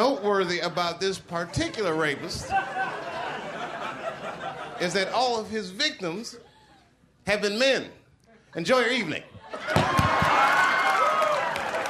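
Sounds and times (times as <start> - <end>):
speech: 0.0 - 3.1, 4.8 - 6.5, 7.2 - 10.5
laughter: 0.3 - 5.5, 9.2 - 10.4
scattered cheers and whoops: 9.6 - 11.8
audience clapping: 9.7 - 11.8.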